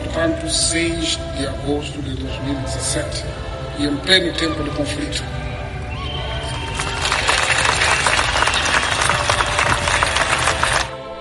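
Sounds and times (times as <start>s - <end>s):
speech: 0.1s - 5.5s
crowd clapping: 6.0s - 11.0s.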